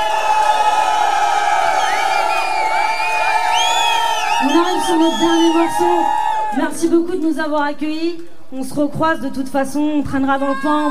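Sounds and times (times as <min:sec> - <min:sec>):
concert crowd cheering: 0:00.0 - 0:07.0
speech: 0:04.4 - 0:10.9.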